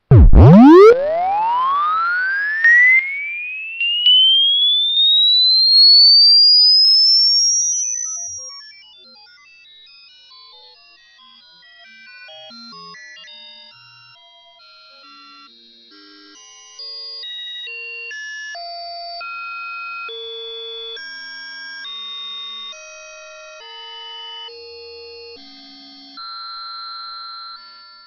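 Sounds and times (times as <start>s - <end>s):
ringtone: 0.2s - 5.2s.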